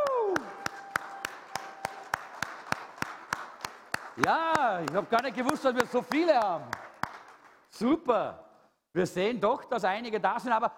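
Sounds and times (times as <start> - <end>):
audience applause: 0.0 - 7.6
speech: 4.2 - 6.8, 7.8 - 8.4, 9.0 - 10.7.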